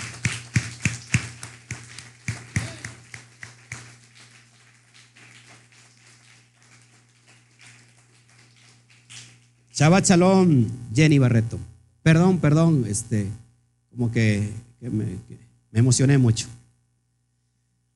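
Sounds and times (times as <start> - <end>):
audience applause: 0.0 - 9.3
speech: 9.8 - 13.4, 14.0 - 16.6.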